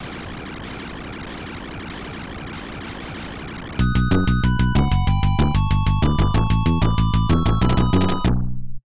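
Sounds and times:
landing success jingle: 0:03.8 - 0:08.3.

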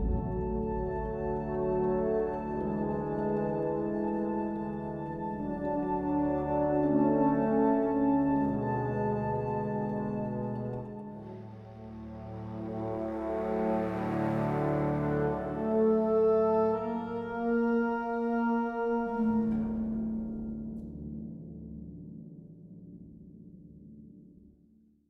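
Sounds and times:
world music: 0:00.1 - 0:20.4.

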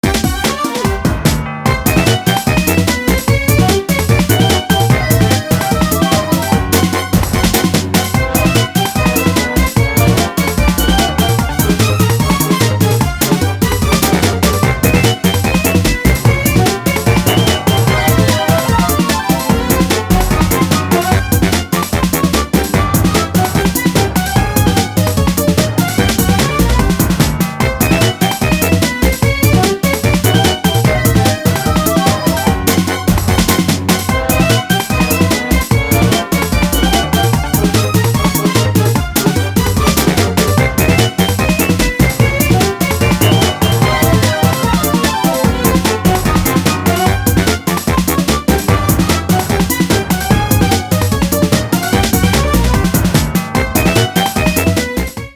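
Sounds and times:
jazzy music: 0:00.0 - 0:55.3.

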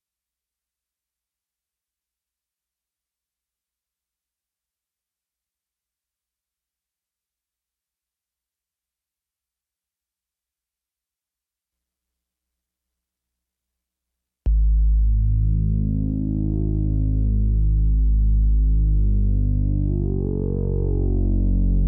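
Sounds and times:
bass build-up: 0:14.5 - 0:21.8.

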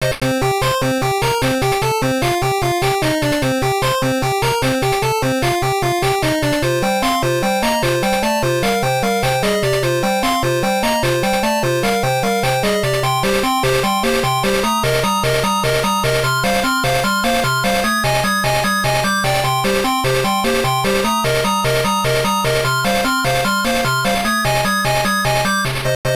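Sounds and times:
background game music: 0:00.2 - 0:26.0.

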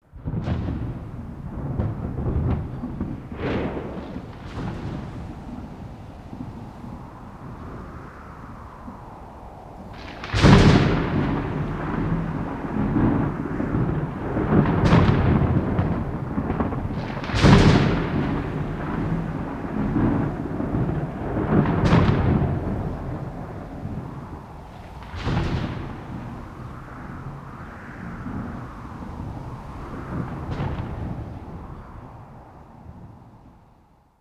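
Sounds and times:
thunderstorm: 0:00.1 - 0:34.2.

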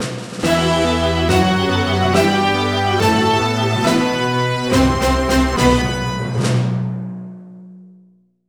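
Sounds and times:
pinball music sting: 0:00.4 - 0:06.8.

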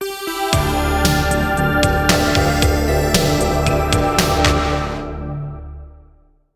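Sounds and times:
zombie wave end boss music: 0:00.5 - 0:05.7.

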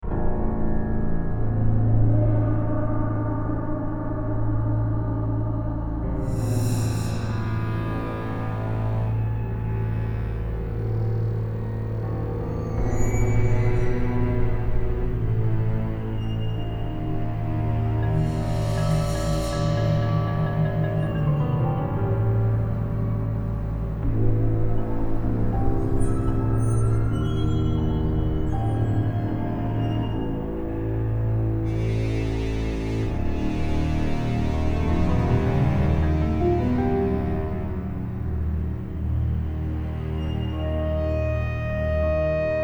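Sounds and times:
eerie ambient background: 0:00.0 - 0:42.6.

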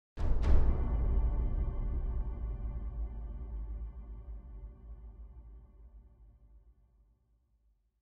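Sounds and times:
big drums: 0:00.2 - 0:03.4.

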